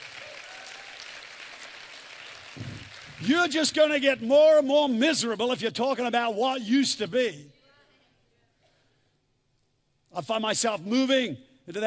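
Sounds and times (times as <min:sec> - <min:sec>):
audience clapping: 0:00.0 - 0:03.9
speech: 0:02.6 - 0:07.6, 0:10.2 - 0:11.8.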